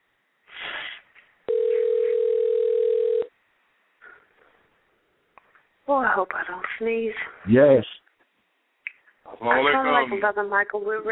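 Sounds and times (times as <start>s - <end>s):
telephone dialing tone: 1.5s - 3.3s
speech: 5.9s - 8.0s, 9.4s - 11.1s.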